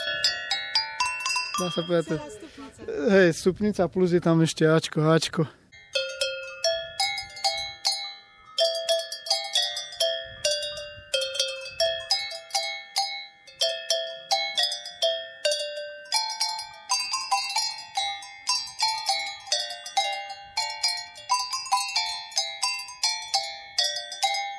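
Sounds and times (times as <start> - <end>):
sheet-metal sheep bells ringing: 0.0 - 2.8, 5.7 - 24.5
speech: 1.6 - 5.6.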